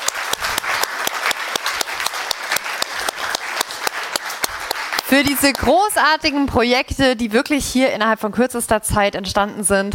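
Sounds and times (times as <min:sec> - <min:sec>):
audience applause: 0:00.0 - 0:05.8
speech: 0:05.1 - 0:09.9.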